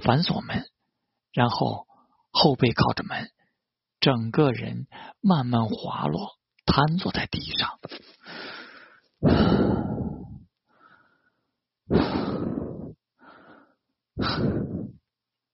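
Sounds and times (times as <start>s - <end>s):
speech: 0.0s - 0.7s, 1.3s - 3.4s, 4.0s - 8.5s, 9.2s - 9.9s
heavy panting breaths: 8.1s - 15.1s.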